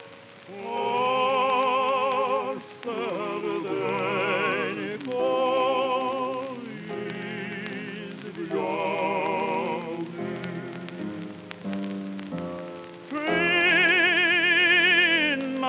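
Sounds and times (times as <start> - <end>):
Ukrainian tenor singing: 0.0 - 15.6.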